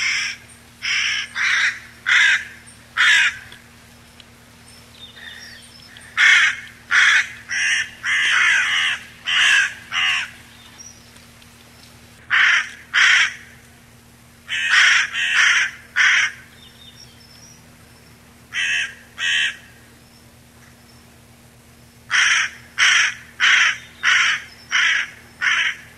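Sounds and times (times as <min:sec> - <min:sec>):
Corvus corone: 0:00.0 - 0:03.5, 0:05.2 - 0:10.3, 0:12.3 - 0:13.5, 0:14.5 - 0:16.5, 0:18.5 - 0:19.8, 0:22.1 - 0:25.9.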